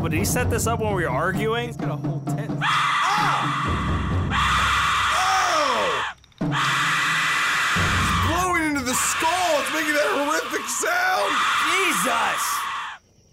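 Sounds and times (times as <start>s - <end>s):
speech: 0.0s - 4.0s, 9.0s - 12.6s
Aztec death whistle shrieking in scream-like blasts: 2.6s - 13.0s.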